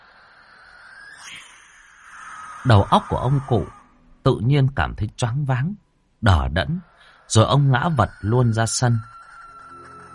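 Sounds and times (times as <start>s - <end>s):
barn owl screeching in flight: 0.0s - 4.2s, 6.5s - 10.1s
speech: 2.6s - 9.2s.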